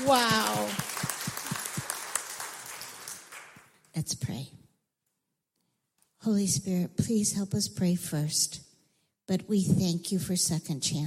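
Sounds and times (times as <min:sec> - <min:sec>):
church audience clapping at a children's lesson: 0:00.0 - 0:03.9
speech: 0:00.1 - 0:00.4, 0:04.0 - 0:04.6, 0:06.2 - 0:08.7, 0:09.3 - 0:11.0.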